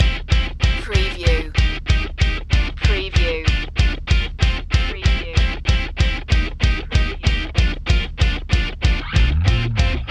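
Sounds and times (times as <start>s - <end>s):
punk shuffle drum loop: 0.0s - 10.0s.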